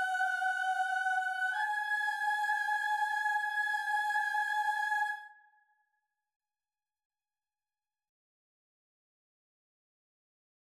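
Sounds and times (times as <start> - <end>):
soprano singing: 0.0 - 5.4.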